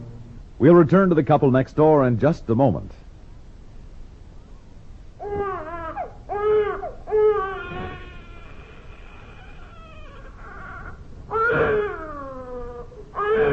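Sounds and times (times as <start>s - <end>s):
speech: 0.7s - 3.0s
baby crying: 5.2s - 13.5s.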